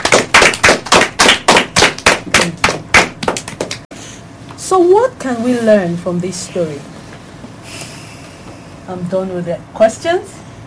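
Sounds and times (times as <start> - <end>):
group clapping in unison: 0.0 - 3.9
speech: 4.7 - 7.0, 8.9 - 10.4.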